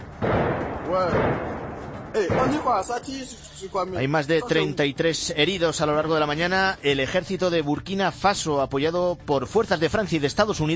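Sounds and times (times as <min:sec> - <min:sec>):
gunfire: 0:00.0 - 0:03.1
explosions: 0:00.1 - 0:03.1
speech: 0:01.0 - 0:01.4, 0:02.2 - 0:10.7.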